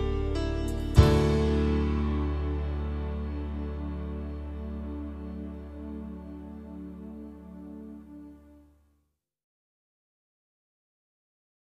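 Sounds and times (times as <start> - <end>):
cello: 0.0 - 8.7.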